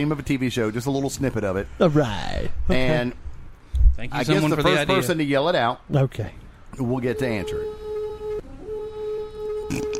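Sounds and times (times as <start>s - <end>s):
speech: 0.0s - 3.2s, 4.0s - 7.8s
Viking war horn blast: 7.1s - 9.9s.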